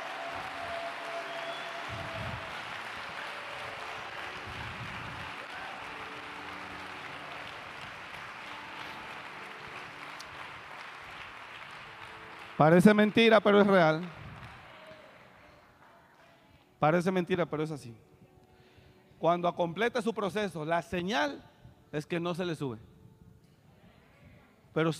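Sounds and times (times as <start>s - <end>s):
church congregation applauding after a prayer of thanks: 0.0s - 16.4s
speech: 12.6s - 14.2s, 16.8s - 18.1s, 19.2s - 22.9s, 24.8s - 24.9s.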